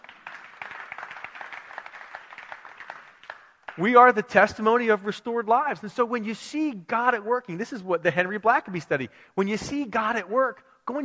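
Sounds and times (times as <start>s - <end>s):
audience applause: 0.0s - 3.9s
speech: 3.8s - 11.0s.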